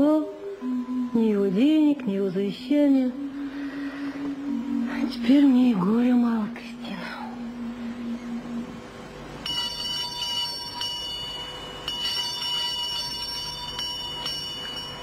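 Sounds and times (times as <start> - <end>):
low hum: 0.0 - 15.0
speech: 1.2 - 3.2, 5.1 - 6.7
shrill electric doorbell ringing: 9.4 - 15.0.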